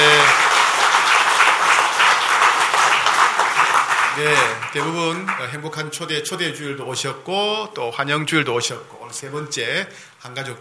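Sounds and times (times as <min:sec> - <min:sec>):
audience applause: 0:00.0 - 0:05.6
speech: 0:04.7 - 0:10.5.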